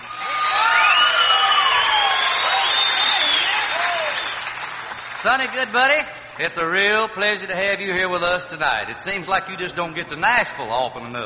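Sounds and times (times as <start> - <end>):
audience applause: 0.0 - 7.0
speech: 5.2 - 11.2.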